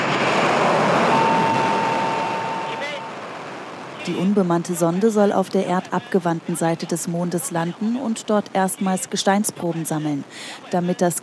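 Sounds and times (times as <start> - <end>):
carrier rocket with a lunar probe lifting off from a spaceport on a southern island: 0.0 - 3.8
speech: 4.1 - 11.2.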